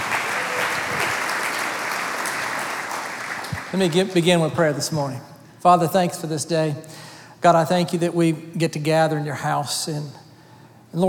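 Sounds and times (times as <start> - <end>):
crowd clapping: 0.0 - 4.3
speech: 3.7 - 10.2.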